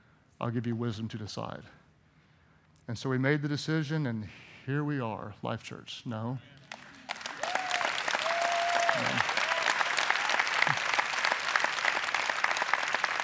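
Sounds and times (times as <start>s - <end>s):
speech: 0.4s - 1.8s, 2.9s - 6.6s, 9.0s - 9.3s
audience clapping: 6.6s - 13.2s.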